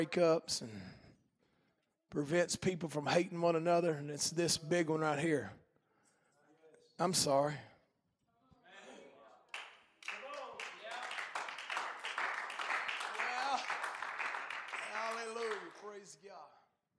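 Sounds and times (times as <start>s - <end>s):
speech: 0.0s - 1.0s, 2.1s - 5.6s, 7.0s - 7.7s
people clapping: 9.4s - 16.2s.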